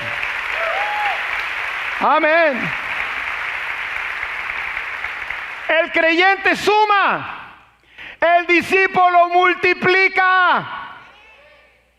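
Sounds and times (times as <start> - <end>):
audience applause: 0.0 - 5.7
speech: 2.0 - 2.8, 5.7 - 7.4, 8.2 - 10.8.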